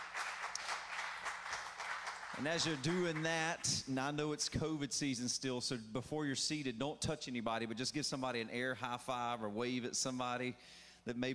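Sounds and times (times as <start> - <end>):
crowd clapping hands: 0.0 - 3.9
speech: 2.4 - 11.3.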